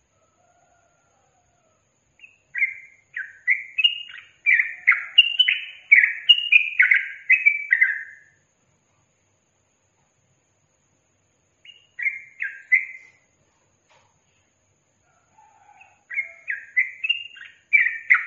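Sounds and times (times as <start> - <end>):
yellow-vented bulbul singing chattering slurred phrases: 2.2 - 8.3, 11.6 - 13.3, 15.4 - 18.2.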